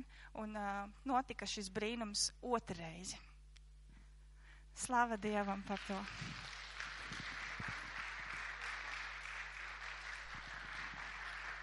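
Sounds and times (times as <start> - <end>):
speech: 0.1 - 3.3, 4.8 - 6.5
audience applause: 5.7 - 11.6.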